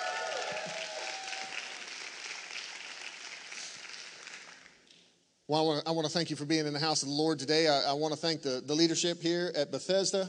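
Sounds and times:
scattered shouts and whoop: 0:00.0 - 0:01.8
church audience applauding: 0:00.0 - 0:04.9
speech: 0:05.5 - 0:10.2.

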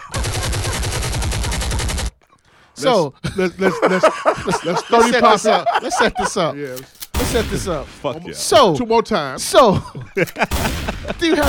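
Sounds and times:
laughter: 0:00.0 - 0:01.9, 0:03.0 - 0:06.9, 0:08.1 - 0:11.4
automatic gunfire sound effect: 0:00.0 - 0:02.1, 0:07.1 - 0:08.0, 0:10.5 - 0:11.4
speech: 0:02.8 - 0:11.4.

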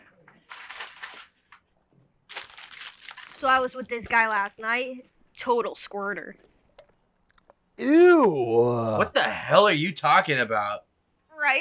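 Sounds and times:
bag of Doritos chips crinkling: 0:02.3 - 0:04.7
speech: 0:03.4 - 0:06.5, 0:07.8 - 0:11.5.

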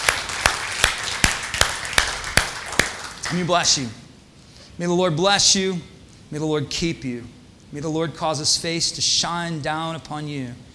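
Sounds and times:
rhythmic clapping in unison: 0:00.0 - 0:03.9
speech: 0:03.3 - 0:04.0, 0:04.8 - 0:10.7.

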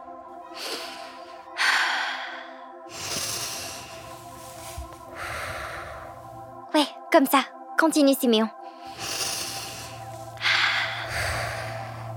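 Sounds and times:
steady sustained musical tone: 0:00.0 - 0:12.1
person breathing slowly and deeply: 0:00.5 - 0:06.6, 0:08.6 - 0:12.1
speech: 0:07.1 - 0:08.6.

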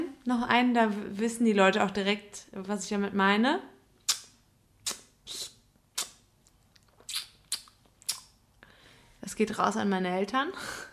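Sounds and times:
speech: 0:00.3 - 0:03.7, 0:09.4 - 0:10.9
sucking clicks of someone drawing food from between the teeth after eating: 0:04.0 - 0:08.4.

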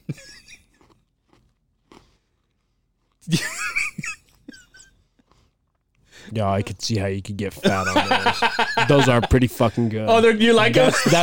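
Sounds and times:
speech: 0:00.1 - 0:00.3, 0:03.3 - 0:03.5, 0:06.3 - 0:11.2
crunching on a hard all-sugar seashell-shaped candy: 0:00.4 - 0:03.3
laughter: 0:03.3 - 0:04.8, 0:07.6 - 0:11.2.

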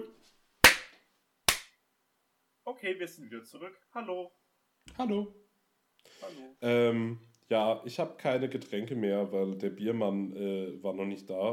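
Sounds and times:
hand clap marking an edit point: 0:00.6 - 0:00.9, 0:01.5 - 0:01.8
speech: 0:02.7 - 0:05.4, 0:06.0 - 0:11.5.

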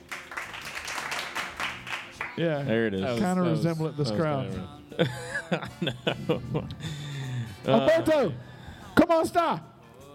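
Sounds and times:
audience clapping: 0:00.0 - 0:02.4
speech: 0:02.4 - 0:07.0, 0:07.6 - 0:09.7
laughter: 0:04.9 - 0:08.1.

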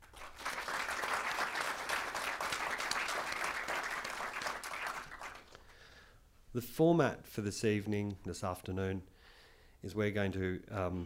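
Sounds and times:
audience applause welcoming speakers to an evening talk: 0:00.0 - 0:05.6
speech: 0:06.6 - 0:09.1, 0:09.8 - 0:11.0.

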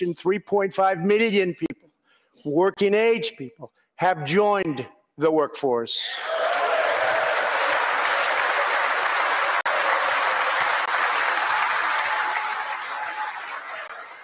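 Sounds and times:
speech: 0:00.0 - 0:01.7, 0:02.4 - 0:06.4
sustained applause from a large audience: 0:06.2 - 0:14.2.

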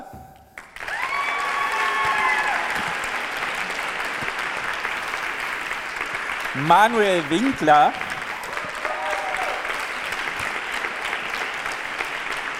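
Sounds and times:
audience applause: 0:00.6 - 0:12.5
people cheering and whistling: 0:00.8 - 0:03.1, 0:08.3 - 0:09.9
speech: 0:06.6 - 0:08.0.

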